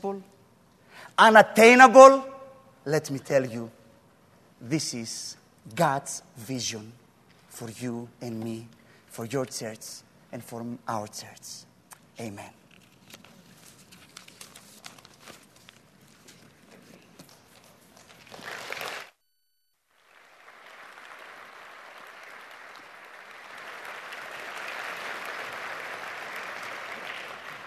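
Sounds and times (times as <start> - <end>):
speech: 0.0 - 0.4, 1.0 - 3.8, 4.6 - 7.0, 7.6 - 12.6
audience applause: 18.2 - 19.1, 20.0 - 27.6.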